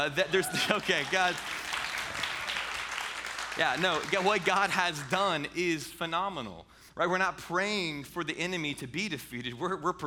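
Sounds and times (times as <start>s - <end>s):
speech: 0.0s - 1.6s, 3.6s - 10.0s
audience clapping: 0.0s - 5.4s.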